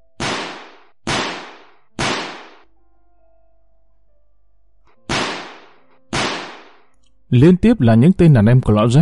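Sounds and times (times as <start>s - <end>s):
pistol gunshots: 0.2s - 2.7s, 5.1s - 6.8s
speech: 7.3s - 8.9s.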